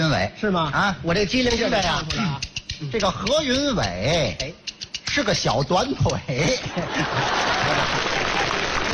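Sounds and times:
speech: 0.1 - 8.5
laughter: 6.3 - 8.9
audience applause at a live stage performance: 7.0 - 8.9.

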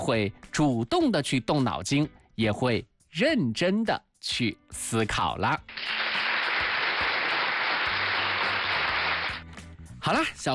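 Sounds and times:
speech: 0.0 - 6.0, 10.0 - 10.5
crowd applause: 5.7 - 9.4.

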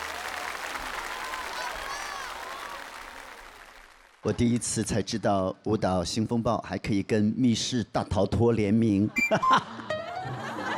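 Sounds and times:
faint voices and cheers: 0.0 - 3.2
audience applause: 0.0 - 4.2
speech: 4.2 - 10.6
laughter: 9.0 - 10.7.

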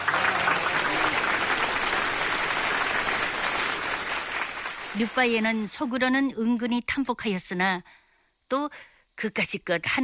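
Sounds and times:
applause: 0.0 - 5.6
speech: 5.0 - 10.0.

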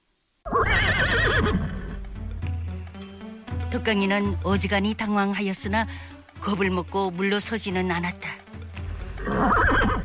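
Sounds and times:
horse neighing: 0.5 - 1.9, 9.2 - 10.0
speech: 3.7 - 8.4.

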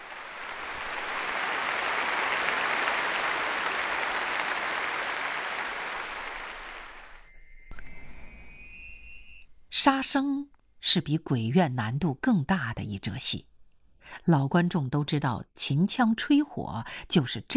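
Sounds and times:
thunderous theater applause: 0.0 - 6.8
speech: 9.8 - 13.5, 14.1 - 17.5.

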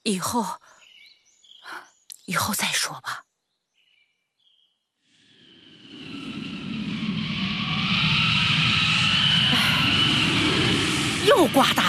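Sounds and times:
speech: 0.0 - 0.7, 1.7 - 3.2, 11.3 - 11.8
strong wind blowing: 5.5 - 11.8.

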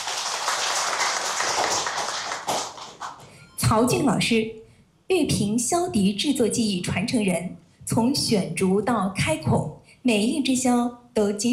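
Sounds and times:
audience applause: 0.0 - 3.2
speech: 3.7 - 11.5.

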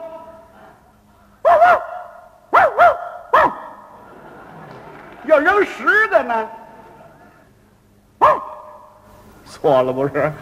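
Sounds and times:
person imitating a dog bark: 1.4 - 3.8
laughter: 3.9 - 7.7
speech: 5.3 - 6.6, 9.6 - 10.4.

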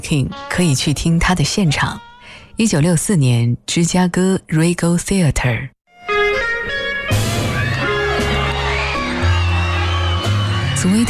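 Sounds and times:
speech: 0.0 - 5.8, 10.8 - 11.0
live concert crowd cheering and shouting: 7.0 - 11.0.

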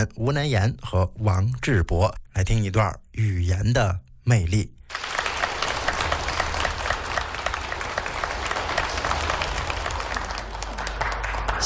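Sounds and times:
speech: 0.0 - 5.0
audience applause: 4.9 - 11.6.

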